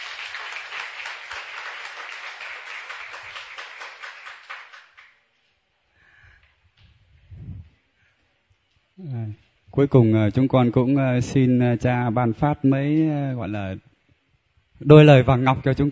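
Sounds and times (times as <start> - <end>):
audience applause: 0.0 - 5.1
speech: 9.0 - 13.9, 14.8 - 15.8.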